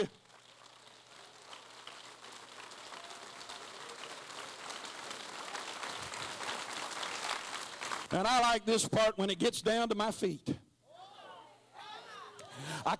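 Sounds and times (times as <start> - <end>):
speech: 0.0 - 0.2, 8.1 - 10.6
audience clapping hands: 0.0 - 8.6.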